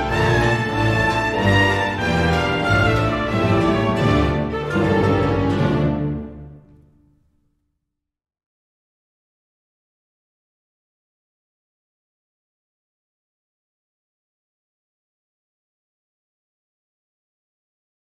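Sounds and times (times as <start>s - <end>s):
character dance intermezzo music: 0.0s - 7.3s.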